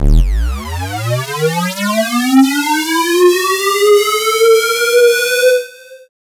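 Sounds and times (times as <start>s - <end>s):
rising sound effect: 0.0s - 5.0s.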